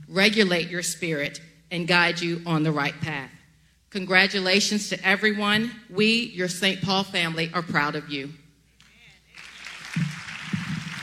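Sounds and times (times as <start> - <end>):
speech: 0.1 - 8.4
applause: 8.8 - 11.0.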